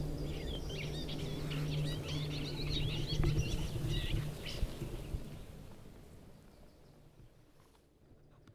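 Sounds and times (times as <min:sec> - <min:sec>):
garden warbler singing: 0:00.0 - 0:07.5.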